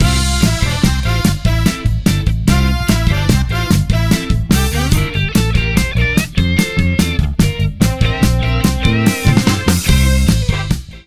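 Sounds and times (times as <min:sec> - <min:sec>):
happy RnB music: 0:00.0 - 0:11.0.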